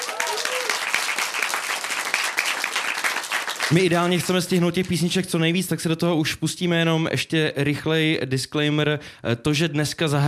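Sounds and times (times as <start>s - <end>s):
faint whoop: 0.0s - 0.9s
crowd applause: 0.0s - 4.3s
speech: 3.7s - 10.2s.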